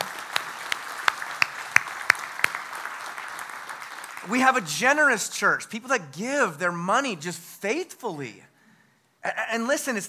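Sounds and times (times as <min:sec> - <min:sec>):
round of applause for volunteers: 0:00.0 - 0:04.6
speech: 0:04.2 - 0:08.5, 0:09.2 - 0:10.0.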